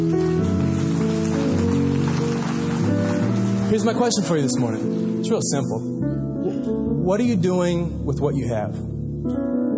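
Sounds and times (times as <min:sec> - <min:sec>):
audience clapping: 0:00.0 - 0:05.2
speech: 0:03.7 - 0:09.6.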